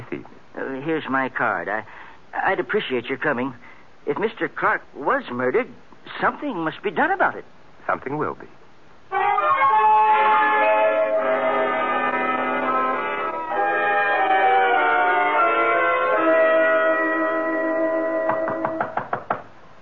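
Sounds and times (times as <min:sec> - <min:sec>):
speech: 0:00.1 - 0:08.6
orchestral music: 0:09.1 - 0:18.8
sharp loud knocks at a gate: 0:18.3 - 0:19.5.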